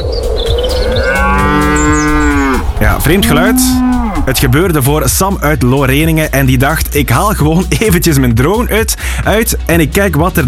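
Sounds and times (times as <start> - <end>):
cows mooing in the evening: 0.7 - 4.7
speech: 3.0 - 10.4.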